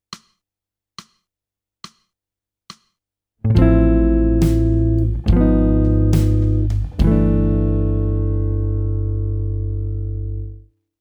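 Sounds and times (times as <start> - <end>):
jazz music: 3.5 - 10.0.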